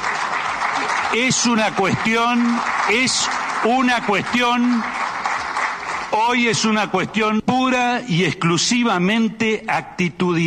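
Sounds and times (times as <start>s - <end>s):
audience applause: 0.0s - 7.2s
speech: 1.1s - 5.0s, 6.1s - 10.4s.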